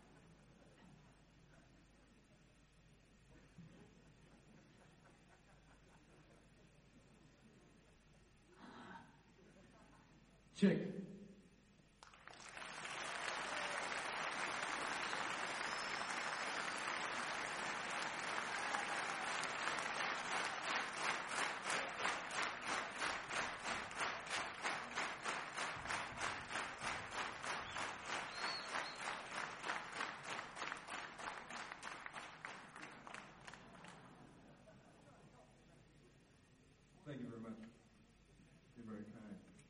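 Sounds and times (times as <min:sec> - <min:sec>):
speech: 0:10.6 - 0:11.0
audience clapping together: 0:12.0 - 0:34.4.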